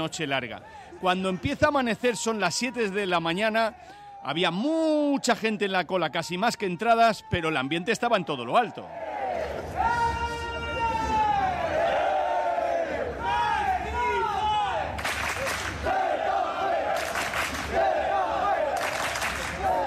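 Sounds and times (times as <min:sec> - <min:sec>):
speech: 0:00.0 - 0:09.5
crowd shouting: 0:00.7 - 0:19.8
football fans chanting team name: 0:11.3 - 0:19.8
crowd clapping: 0:14.9 - 0:15.9, 0:16.9 - 0:17.9, 0:18.6 - 0:19.8.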